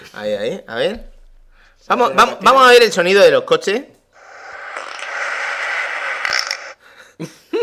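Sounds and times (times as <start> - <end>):
speech: 0.2 - 1.1, 1.8 - 3.9
fart sound effect: 4.2 - 6.8.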